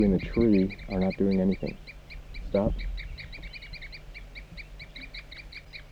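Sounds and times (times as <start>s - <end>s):
speech: 0.0s - 3.3s
low rumbling background: 0.0s - 4.4s
wild bird tooping calls: 0.0s - 5.9s.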